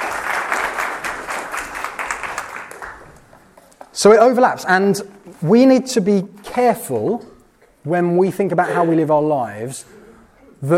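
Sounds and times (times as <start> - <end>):
audience applause: 0.0 - 3.4
speech: 4.0 - 10.0, 10.6 - 10.7.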